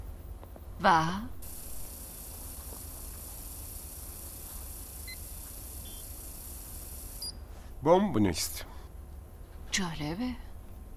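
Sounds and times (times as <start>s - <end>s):
speech: 0.8s - 1.4s, 7.8s - 8.7s, 9.8s - 10.5s
chemical vapour detector beeping and hissing: 1.4s - 7.4s.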